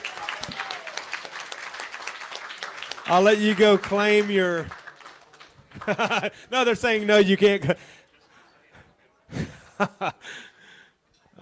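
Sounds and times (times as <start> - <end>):
diners clapping at an evening event: 0.0 - 6.2
speech: 3.1 - 4.8, 5.8 - 8.0, 9.8 - 10.4
laughter: 5.7 - 6.5, 9.3 - 10.5.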